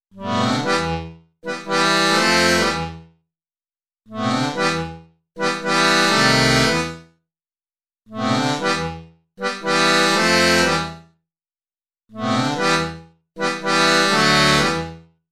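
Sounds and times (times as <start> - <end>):
accordion with reverb: 0.2 - 3.1, 4.1 - 7.1, 8.1 - 11.1, 12.2 - 15.1.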